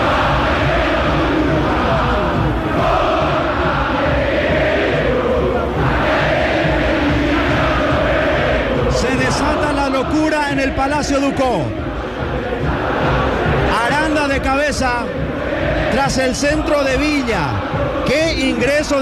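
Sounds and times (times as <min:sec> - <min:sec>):
football fans singing and chanting in the stadium: 0:00.0 - 0:19.0
speech: 0:10.9 - 0:11.8, 0:15.9 - 0:19.0.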